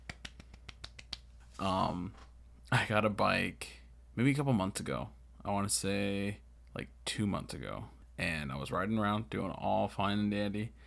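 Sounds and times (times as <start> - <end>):
hand claps: 0.0 - 1.4
speech: 1.6 - 10.8.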